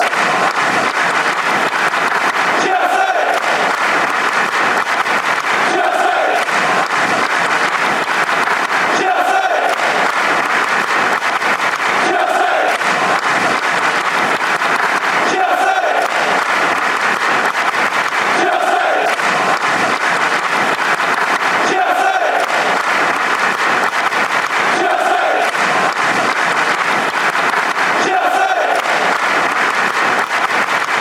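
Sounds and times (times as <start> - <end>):
Chelsea football crowd clapping: 0.0 - 30.9.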